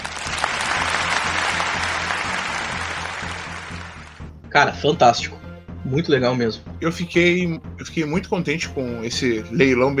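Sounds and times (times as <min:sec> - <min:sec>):
applause: 0:00.0 - 0:04.2
speech: 0:04.6 - 0:09.9.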